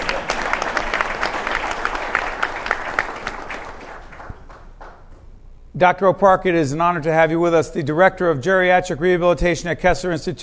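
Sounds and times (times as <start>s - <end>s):
audience applause: 0.0s - 5.0s
speech: 5.8s - 10.4s.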